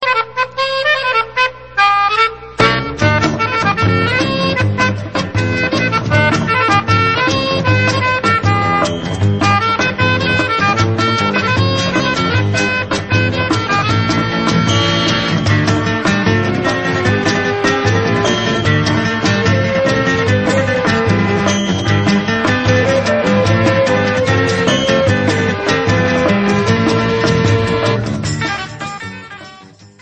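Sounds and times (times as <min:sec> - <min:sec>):
instrumental music: 0:00.0 - 0:29.9.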